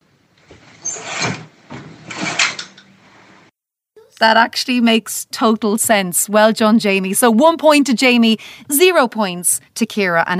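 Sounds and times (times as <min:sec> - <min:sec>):
fabric curtains being opened and closed along a rail: 0:00.4 - 0:03.5
speech: 0:04.2 - 0:10.3.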